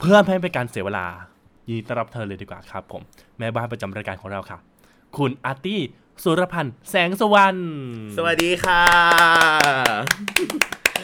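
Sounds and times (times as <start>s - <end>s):
speech: 0.0s - 10.8s
hand clapping causing audio distortion: 8.3s - 11.0s.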